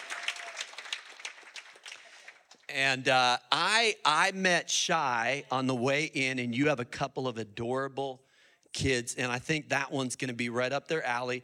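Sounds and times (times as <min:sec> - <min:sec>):
audience applause: 0:00.0 - 0:02.7
speech: 0:02.7 - 0:11.4.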